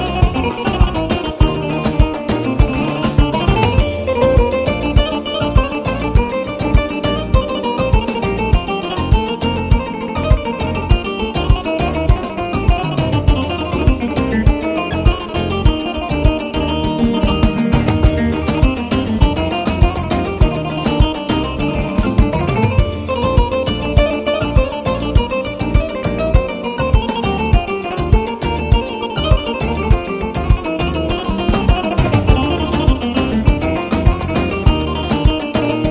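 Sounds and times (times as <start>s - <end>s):
Yamaha Tyros3 keyboard music: 0.0s - 35.8s.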